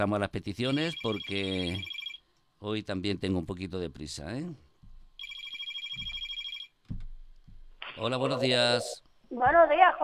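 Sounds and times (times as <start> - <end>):
speech: 0.0 - 2.0, 2.6 - 4.6, 8.0 - 10.0
telephone ringing before a radio call-in is answered: 0.6 - 2.2, 5.2 - 6.8.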